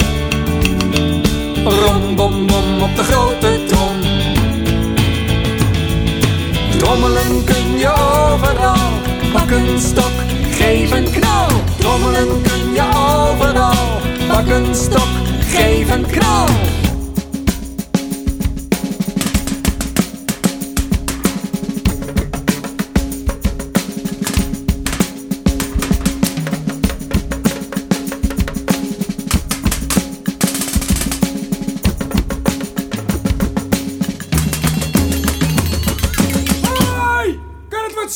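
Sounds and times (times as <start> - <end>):
drumming: 0.0 - 38.1.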